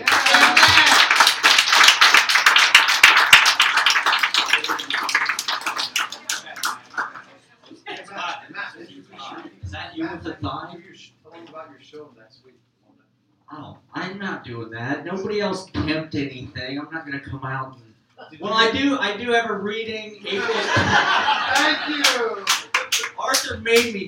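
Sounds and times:
audience slapping thighs as applause: 0.0 - 8.4
speech: 14.1 - 22.5, 23.2 - 24.0
laughter: 20.2 - 23.2.

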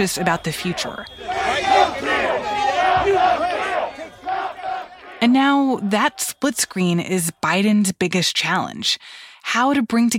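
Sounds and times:
speech: 0.0 - 2.0, 5.2 - 10.1
crowd cheering in the street: 0.0 - 7.6.

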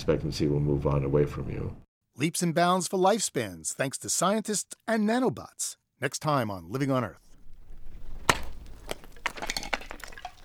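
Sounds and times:
speech: 0.0 - 7.3
melting glacier ice snapping and crackling on Canada Glacier: 7.3 - 10.4.

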